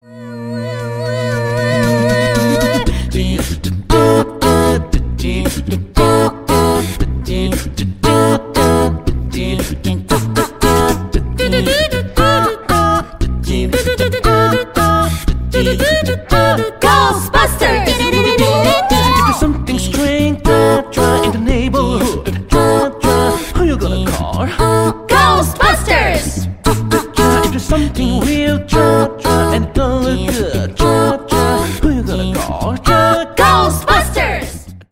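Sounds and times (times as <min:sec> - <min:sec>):
a cappella singing: 0:00.0 - 0:34.7.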